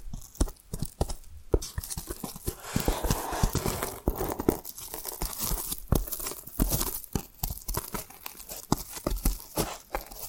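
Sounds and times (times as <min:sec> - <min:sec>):
tapping and scratching: 0:00.0 - 0:10.2.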